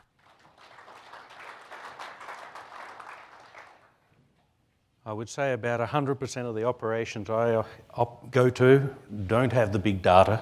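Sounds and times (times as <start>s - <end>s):
audience applauding to welcome a speaker: 0.0s - 4.0s
speech: 5.0s - 10.3s.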